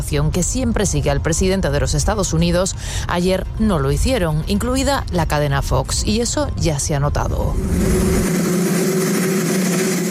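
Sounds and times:
speech: 0.1 - 8.3
helicopter drone: 7.5 - 10.0.

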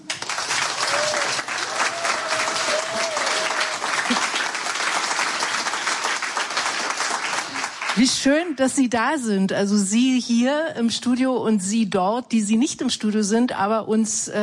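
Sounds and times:
full studio audience applause: 0.0 - 8.4
faint whoop: 0.8 - 4.2
speech: 8.0 - 14.4.

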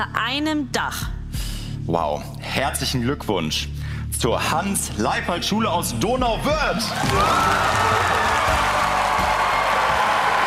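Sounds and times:
speech: 0.0 - 1.1, 1.9 - 8.7
students and teachers cheering at the German School Prize award in Donauwörth: 6.9 - 10.4.

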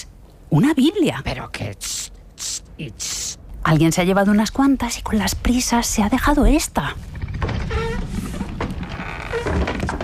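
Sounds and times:
speech: 0.5 - 7.2
secret door opening: 7.0 - 10.0.

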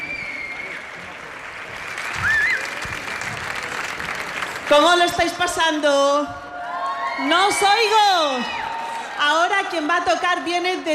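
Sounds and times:
crowd clapping: 0.0 - 5.6
speech: 4.7 - 6.4, 7.2 - 8.6, 9.2 - 10.9.

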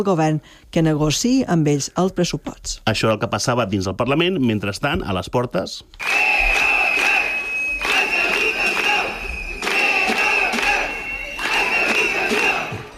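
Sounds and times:
speech: 0.0 - 6.6
protesting crowd chanting outside parliament: 6.0 - 12.9.

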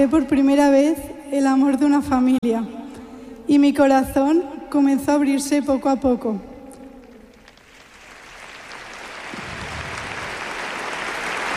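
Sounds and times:
speech: 0.0 - 2.8, 3.5 - 6.5
audience applause: 7.4 - 11.5.

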